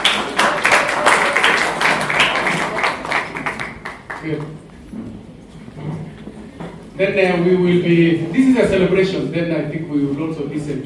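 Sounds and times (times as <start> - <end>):
audience clapping: 0.0 - 4.9
speech: 4.2 - 5.1, 7.0 - 10.8.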